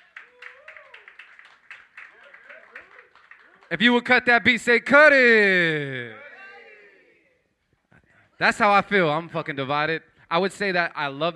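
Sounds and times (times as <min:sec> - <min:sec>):
audience clapping in a steady rhythm: 0:00.0 - 0:04.1
speech: 0:03.7 - 0:06.2, 0:08.4 - 0:11.3.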